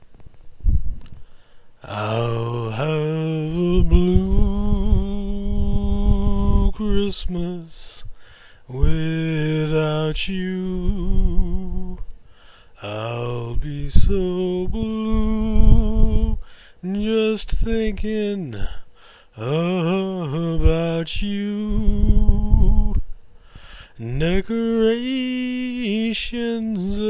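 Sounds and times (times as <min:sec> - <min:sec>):
person singing a cappella: 0:01.8 - 0:12.2, 0:12.8 - 0:23.1, 0:23.9 - 0:27.0.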